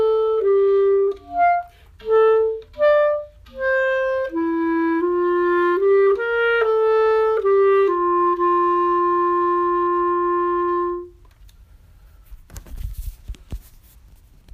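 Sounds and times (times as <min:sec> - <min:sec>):
clarinet playing andante: 0:00.0 - 0:11.3.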